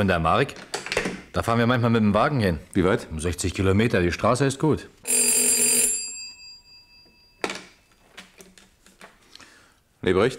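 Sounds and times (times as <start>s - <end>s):
speech: 0.0s - 5.0s, 10.0s - 10.3s
alarm system bell ringing: 5.1s - 7.9s.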